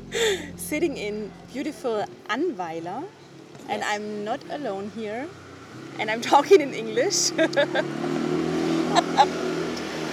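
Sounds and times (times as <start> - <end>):
quad bike (ATV) engine droning while driving alongside in Annweiler: 0.0 - 1.7, 4.7 - 10.1
speech: 0.2 - 8.2
laughter: 7.2 - 7.9, 8.9 - 9.4.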